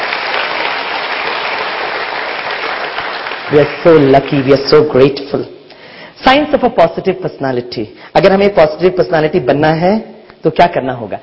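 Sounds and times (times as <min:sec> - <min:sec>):
crowd clapping: 0:00.0 - 0:04.8
speech: 0:03.5 - 0:05.6, 0:06.2 - 0:11.2.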